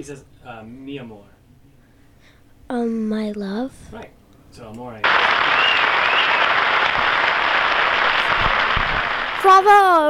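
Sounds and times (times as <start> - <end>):
speech: 0.0 - 1.4, 2.7 - 5.8, 9.4 - 10.0
audience clapping: 5.0 - 9.9.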